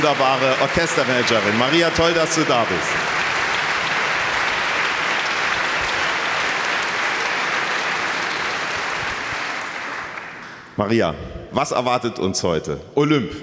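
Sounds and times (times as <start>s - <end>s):
speech: 0.0s - 3.3s, 10.8s - 13.4s
audience applause: 0.0s - 10.7s.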